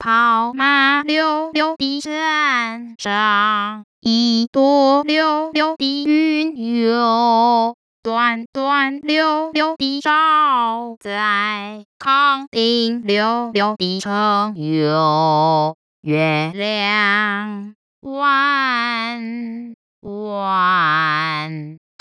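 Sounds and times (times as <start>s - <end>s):
madrigal singing with vibrato: 0.0s - 22.0s.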